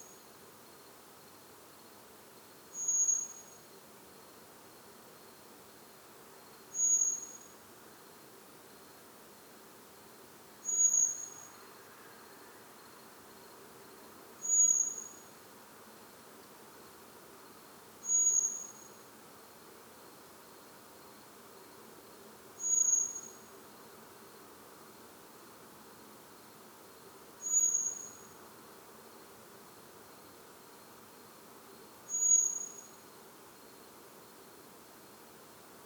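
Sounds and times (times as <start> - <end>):
soft hiss: 0.0 - 35.8
common blackbird thin whistle: 2.7 - 3.6, 6.8 - 7.5, 10.6 - 11.5, 14.4 - 15.2, 18.0 - 18.9, 22.6 - 23.4, 27.4 - 28.3, 32.1 - 32.9.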